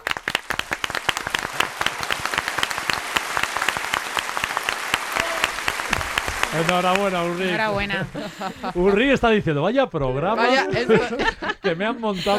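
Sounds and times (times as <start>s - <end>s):
group applauding: 0.0s - 9.4s
laughter: 6.5s - 9.5s, 10.4s - 12.3s
speech: 6.5s - 12.3s.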